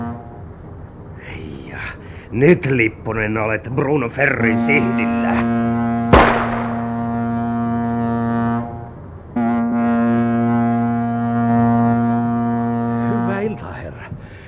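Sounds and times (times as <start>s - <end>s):
ship's horn blowing: 0.0s - 0.6s, 4.2s - 14.4s
speech: 1.9s - 5.6s.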